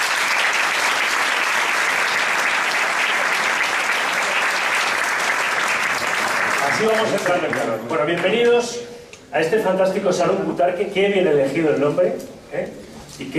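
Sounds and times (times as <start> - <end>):
audience applause: 0.0 - 7.8
speech: 6.8 - 13.3.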